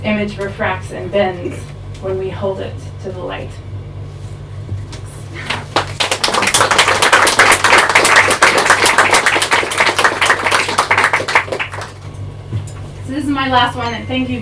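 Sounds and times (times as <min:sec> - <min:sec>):
speech: 0:00.0 - 0:03.7, 0:13.1 - 0:14.4
audience clapping between poems: 0:05.4 - 0:12.2.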